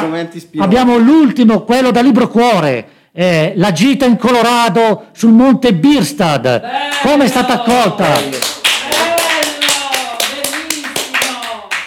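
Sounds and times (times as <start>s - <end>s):
speech: 0.0s - 8.5s
voices calling out and talking: 6.6s - 10.6s
loud applause of hand claps: 7.7s - 11.8s.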